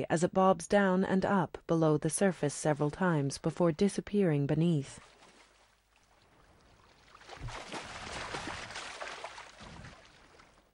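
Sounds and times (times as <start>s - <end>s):
speech: 0.0s - 5.2s, 7.4s - 7.8s
water gently lapping around a woman drifting in open water: 4.8s - 10.7s.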